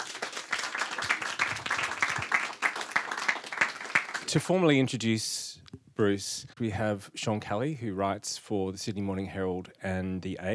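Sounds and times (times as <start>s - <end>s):
audience applause: 0.0s - 4.3s
speech: 4.3s - 5.4s, 6.0s - 10.5s.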